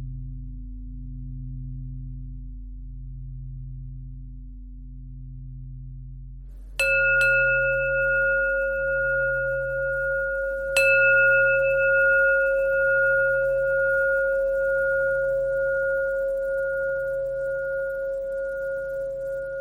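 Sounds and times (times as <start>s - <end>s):
bells ringing: 6.8s - 19.6s.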